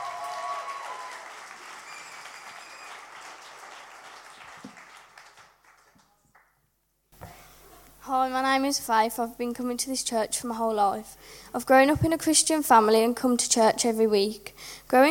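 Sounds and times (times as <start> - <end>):
church audience applause welcoming a speaker to the stage: 0.0 - 6.4
speech: 8.1 - 15.0.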